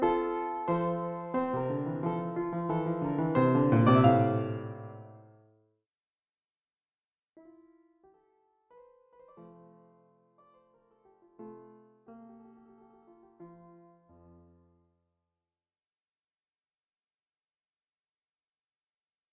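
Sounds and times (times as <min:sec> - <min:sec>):
piano minuet: 0:00.0 - 0:05.6, 0:07.4 - 0:14.9.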